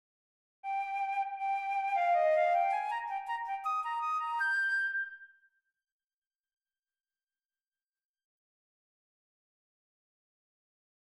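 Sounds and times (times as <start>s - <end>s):
flute: 0.6s - 5.4s.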